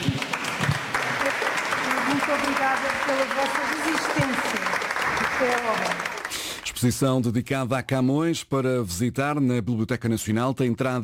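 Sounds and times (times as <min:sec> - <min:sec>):
people clapping at the end of a guided visit: 0:00.0 - 0:06.9
speech: 0:02.5 - 0:04.8, 0:05.4 - 0:06.2, 0:06.8 - 0:11.0.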